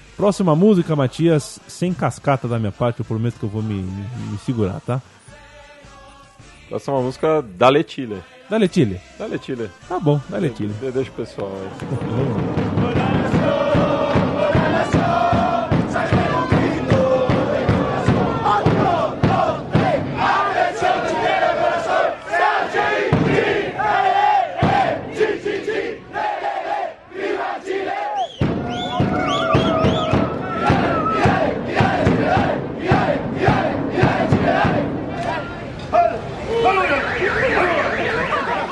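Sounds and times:
speech: 0.2 - 5.4, 6.7 - 12.7
football supporters chanting a war cry: 11.5 - 38.7
laughter: 11.7 - 12.6, 37.5 - 38.7.

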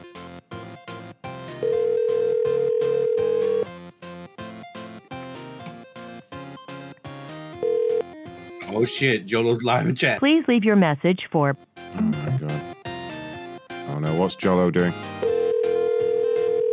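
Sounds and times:
unanswered telephone with melodic electronic ringtone: 1.6 - 3.7, 7.6 - 8.2, 15.2 - 16.7
speech: 8.8 - 12.2, 14.1 - 15.2.

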